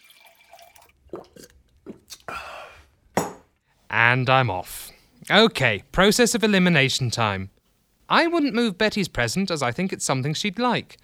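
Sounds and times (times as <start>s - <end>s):
scotch poured into a glass: 0.0s - 2.0s
glass clinking: 3.2s - 3.5s
speech: 4.0s - 11.0s.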